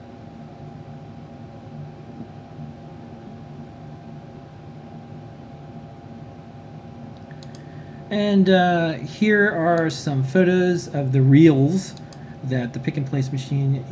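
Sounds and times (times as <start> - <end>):
selective solder machine running at high speed soldering a relay FeatherWing board: 0.0 - 13.8
speech: 8.1 - 13.8.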